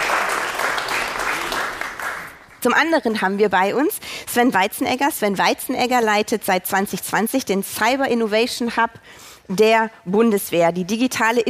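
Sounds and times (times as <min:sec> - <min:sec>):
audience applause: 0:00.0 - 0:02.7
speech: 0:02.6 - 0:11.4.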